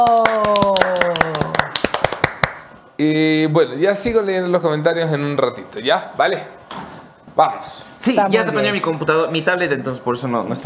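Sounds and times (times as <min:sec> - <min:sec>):
applause: 0:00.0 - 0:02.8
speech: 0:03.0 - 0:06.6, 0:07.4 - 0:10.6.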